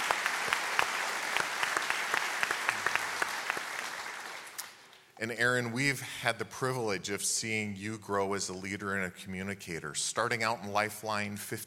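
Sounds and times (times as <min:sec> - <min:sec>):
crowd applause: 0:00.0 - 0:04.9
speech: 0:05.2 - 0:11.6.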